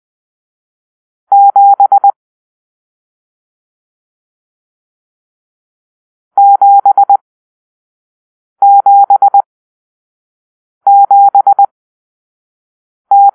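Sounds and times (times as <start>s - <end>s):
morse code for numeral seven: 1.3s - 2.2s, 6.4s - 7.2s, 8.6s - 9.4s, 10.9s - 11.7s, 13.1s - 13.3s.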